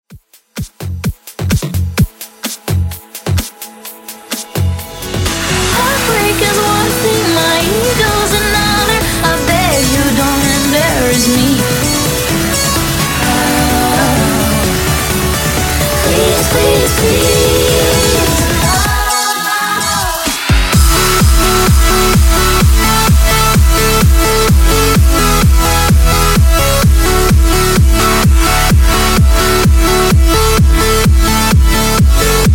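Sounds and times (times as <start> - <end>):
EDM breaker beat: 0.1 - 32.5.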